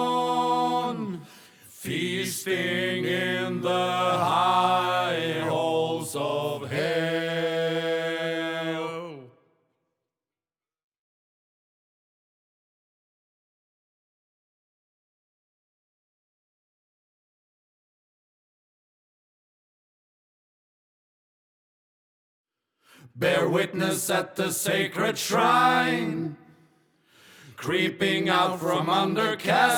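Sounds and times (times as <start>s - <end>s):
chorus singing in English: 0.0s - 9.3s, 23.1s - 26.6s, 27.5s - 29.7s.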